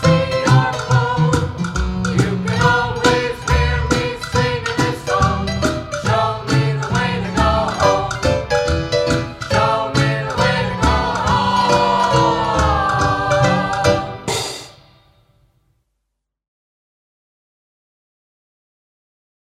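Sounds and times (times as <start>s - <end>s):
piano medley: 0.0s - 14.8s.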